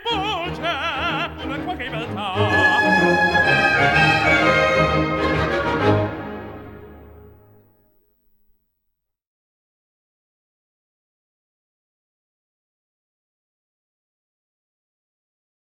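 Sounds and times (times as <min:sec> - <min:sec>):
symphony orchestra: 0:00.1 - 0:07.6.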